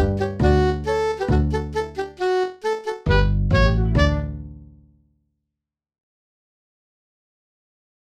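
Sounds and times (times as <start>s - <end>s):
Irish polka: 0.0s - 4.7s.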